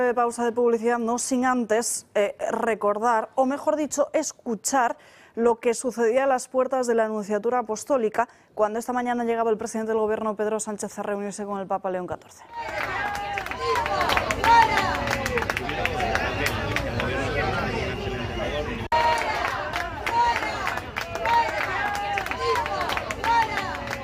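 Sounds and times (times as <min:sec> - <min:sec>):
speech: 0:00.0 - 0:15.6
crowd shouting protest chants: 0:12.4 - 0:24.0.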